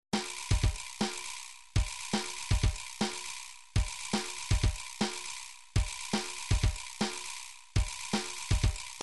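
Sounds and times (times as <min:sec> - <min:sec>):
drum pattern: 0:00.2 - 0:09.0.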